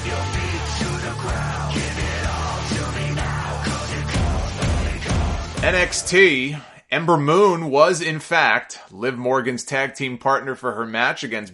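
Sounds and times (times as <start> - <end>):
crowd roaring: 0.0 - 6.2
speech: 5.6 - 11.5.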